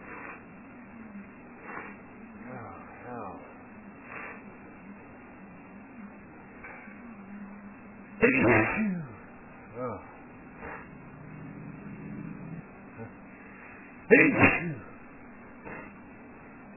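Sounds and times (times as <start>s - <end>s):
man sneezing: 8.2s - 9.2s, 14.1s - 14.9s.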